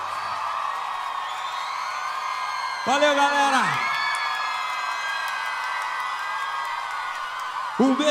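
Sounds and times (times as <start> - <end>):
applause: 0.0 - 8.0
crowd cheering and whooping: 0.0 - 8.0
speech: 2.8 - 3.9, 7.8 - 8.0.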